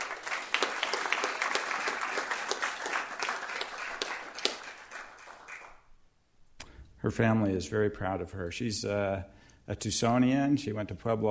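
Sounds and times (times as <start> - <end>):
crowd applause: 0.0 - 5.8
speech: 7.0 - 11.3.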